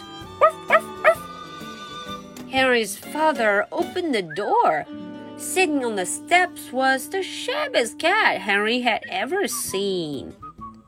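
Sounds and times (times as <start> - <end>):
big dog barking: 0.4 - 1.3
speech: 2.5 - 10.4.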